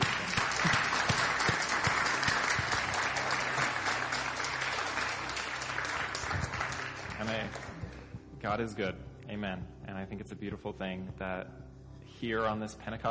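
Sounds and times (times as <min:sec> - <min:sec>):
audience clapping: 0:00.0 - 0:08.1
speech: 0:08.4 - 0:13.1.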